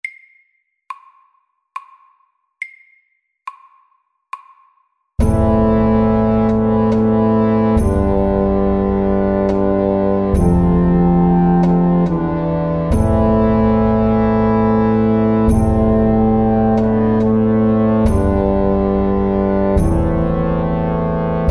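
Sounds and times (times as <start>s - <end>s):
slow hemiola music: 5.2s - 21.4s.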